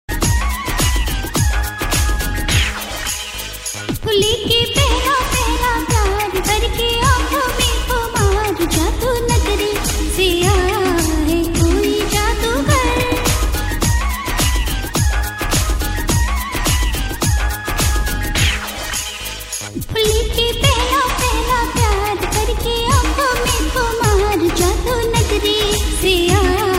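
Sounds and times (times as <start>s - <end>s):
funky old song: 0.1s - 26.7s.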